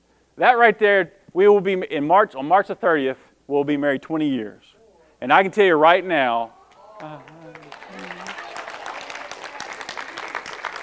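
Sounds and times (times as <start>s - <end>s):
speech: 0.4s - 7.4s
laughter: 0.4s - 10.8s
audience clapping at a talk about a wedding anniversary: 4.8s - 10.8s.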